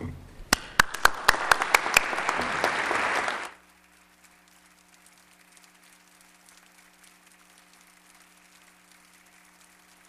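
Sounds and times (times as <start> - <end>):
audience applause: 0.5 - 3.6.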